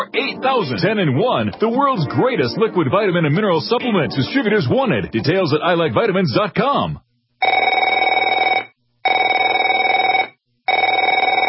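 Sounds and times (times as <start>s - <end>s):
speech: 0.0s - 7.8s
telephone ringing with buzzing bell tone: 7.4s - 11.4s.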